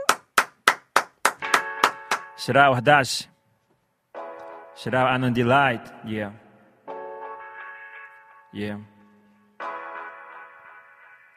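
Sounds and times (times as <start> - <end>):
hand claps sending a guest off: 0.0 - 2.4
speech: 2.4 - 3.3, 4.8 - 6.4, 8.5 - 8.9.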